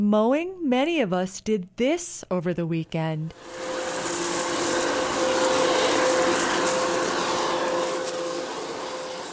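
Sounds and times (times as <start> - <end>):
speech: 0.0 - 3.9
fallen leaves being raked: 3.4 - 9.3.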